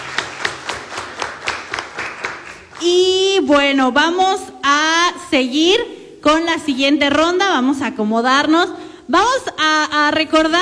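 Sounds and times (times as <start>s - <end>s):
audience applause at a quiz competition: 0.0s - 3.0s
speech: 2.8s - 10.6s.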